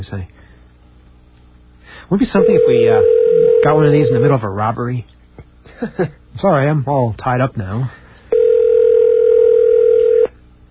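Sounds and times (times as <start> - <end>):
speech: 0.0 - 0.4, 2.0 - 5.2, 5.8 - 8.0
telephone ringing tone: 2.4 - 4.4, 8.3 - 10.3.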